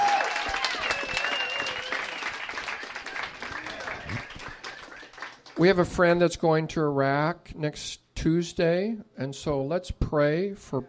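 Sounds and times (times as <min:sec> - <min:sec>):
audience clapping: 0:00.0 - 0:05.7
speech: 0:05.6 - 0:10.8.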